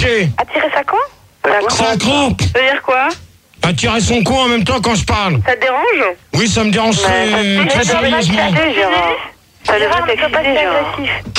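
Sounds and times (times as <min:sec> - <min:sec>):
radio playing in the background: 0:00.0 - 0:03.2, 0:05.2 - 0:11.3
speech: 0:00.0 - 0:11.3.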